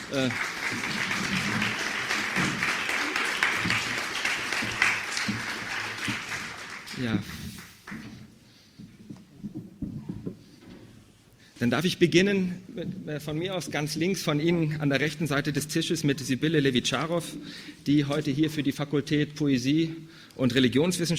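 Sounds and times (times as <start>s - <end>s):
audience applause: 0.0s - 8.1s
speech: 0.1s - 1.6s, 7.0s - 7.5s, 11.6s - 21.1s.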